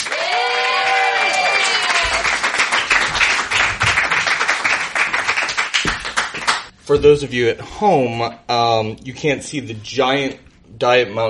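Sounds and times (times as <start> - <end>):
audience applause: 0.0 - 6.7
speech: 6.9 - 11.2.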